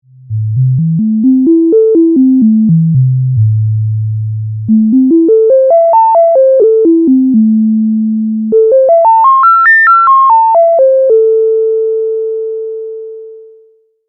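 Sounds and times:
self-oscillation tone: 0.3 - 13.7.

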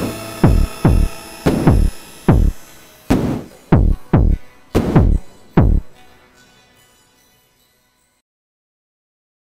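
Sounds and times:
guitar through SOMA Pulsar-23 with pitch delay: 0.0 - 7.3.

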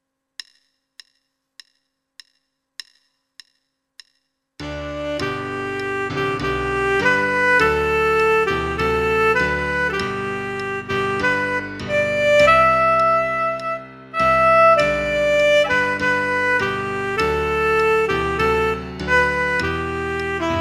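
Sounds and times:
tenor saxophone: 4.7 - 20.5.

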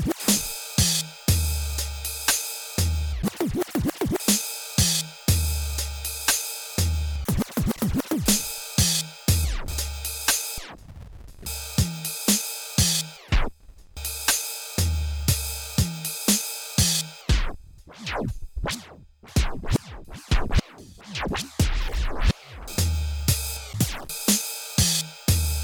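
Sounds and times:
drum machine beat with vinyl effect: 0.0 - 25.6.

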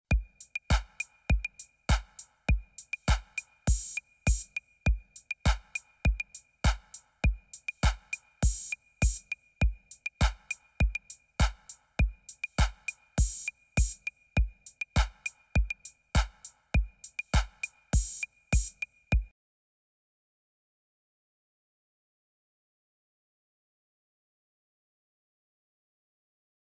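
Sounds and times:
drum beat: 0.1 - 19.3.

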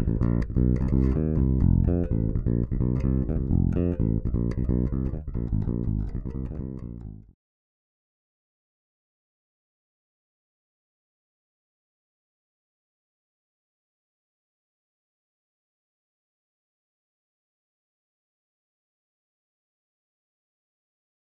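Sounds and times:
Fodera Monarch bass guitar through a Radial JDI: 0.0 - 7.4.

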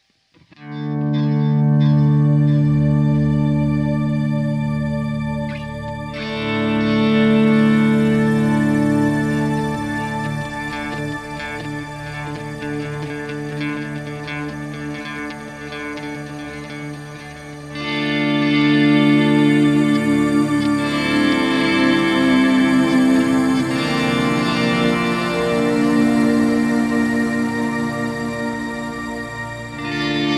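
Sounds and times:
EQD Silos digital delay and shimmer reverb: 1.0 - 30.3.

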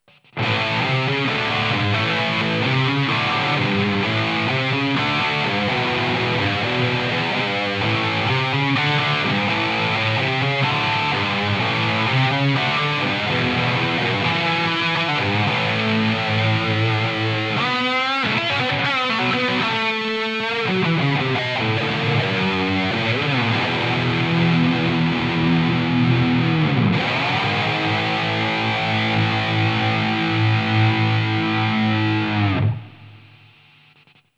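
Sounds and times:
electric guitar through ToneX One Marshall JMP 100 amp model: 0.0 - 34.2.

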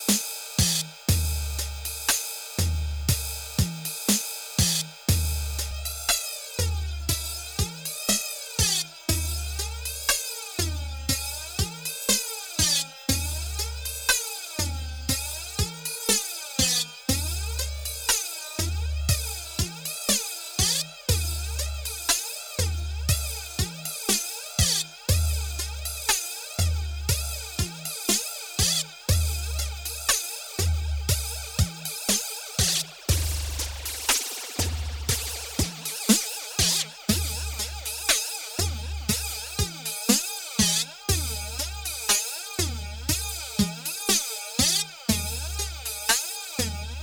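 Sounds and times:
drums through an NTS-3 flanger: 0.1 - 47.0.

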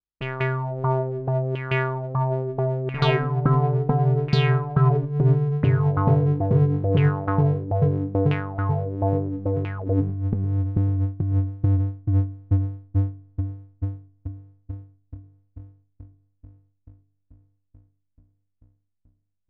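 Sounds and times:
looped synth envelope: 0.3 - 14.8.

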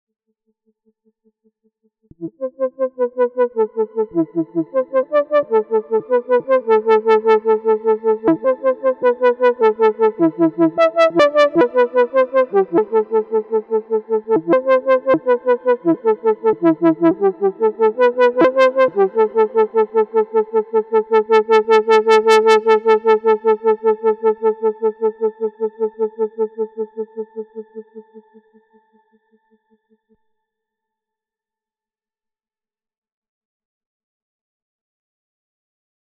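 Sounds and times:
Korg ARP 2600 VST synthesizer flute tone: 2.2 - 28.2.

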